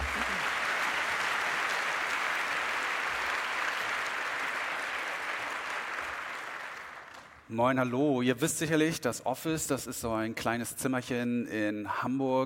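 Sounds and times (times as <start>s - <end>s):
audience applause: 0.0s - 7.5s
speech: 7.5s - 12.4s.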